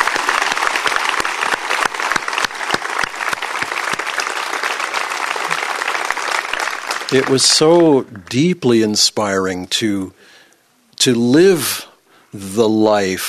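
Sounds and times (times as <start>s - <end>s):
audience applause: 0.0s - 8.0s
speech: 7.1s - 10.3s, 11.0s - 13.2s.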